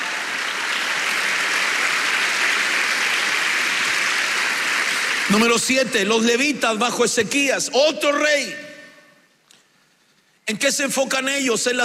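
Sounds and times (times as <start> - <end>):
audience clapping: 0.0 - 6.0
speech: 5.3 - 8.7, 10.5 - 11.8.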